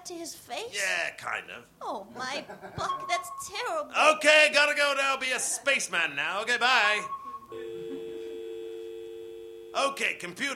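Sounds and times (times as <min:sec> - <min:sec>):
speech: 0:00.1 - 0:07.9, 0:09.8 - 0:10.5
retro telephone ringtone: 0:02.9 - 0:03.6, 0:06.8 - 0:09.8.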